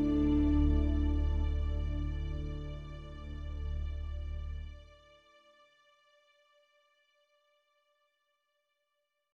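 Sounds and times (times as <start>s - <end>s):
North American wood flute playing: 0.0s - 3.7s.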